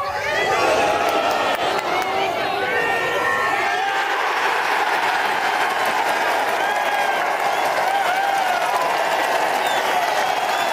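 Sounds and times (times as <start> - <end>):
golf crowd cheering a winning putt in Ireland: 0.0 - 10.7.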